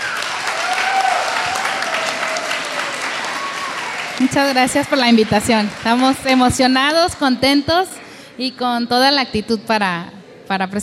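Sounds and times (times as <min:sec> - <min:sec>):
audience applause: 0:00.0 - 0:07.5
speech: 0:04.2 - 0:10.8.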